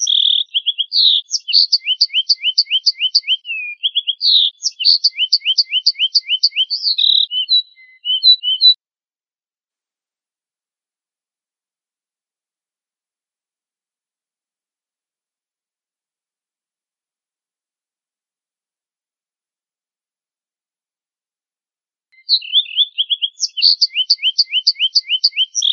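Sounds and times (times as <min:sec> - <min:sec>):
family of canaries singing: 0:00.0 - 0:08.8, 0:22.2 - 0:25.7.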